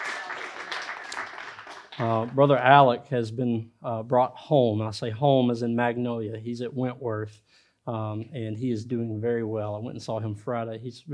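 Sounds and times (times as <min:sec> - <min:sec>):
audience clapping hands: 0:00.0 - 0:02.8
speech: 0:02.0 - 0:11.1.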